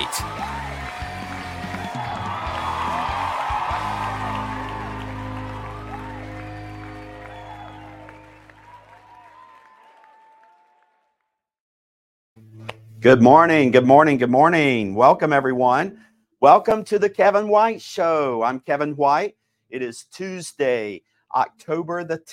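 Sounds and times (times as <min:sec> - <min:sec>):
music: 0:00.0 - 0:09.7, 0:12.4 - 0:17.0
audience applause with cheering and whoops greeting a talk show host: 0:00.0 - 0:11.2
speech: 0:13.0 - 0:22.3.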